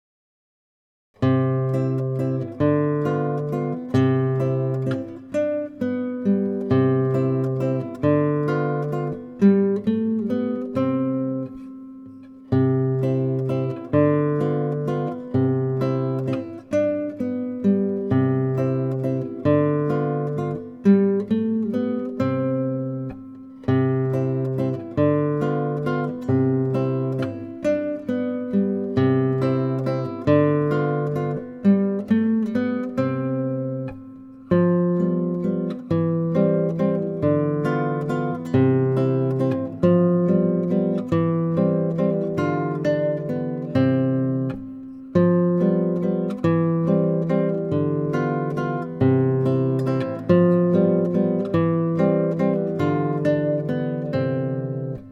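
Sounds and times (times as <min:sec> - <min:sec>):
guitar waltz: 0:01.2 - 0:55.1.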